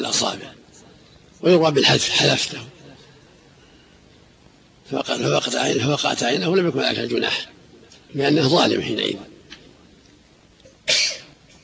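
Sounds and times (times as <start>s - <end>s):
speech: 0.1s - 0.7s, 1.4s - 2.8s, 4.9s - 9.3s
sneeze: 10.8s - 11.6s.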